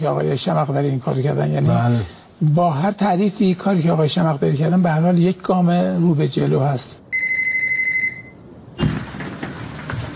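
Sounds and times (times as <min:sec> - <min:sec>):
speech: 0:00.0 - 0:07.0
telephone ringing: 0:07.1 - 0:08.4
dull thump: 0:08.8 - 0:10.1
rustling noise: 0:08.8 - 0:10.1.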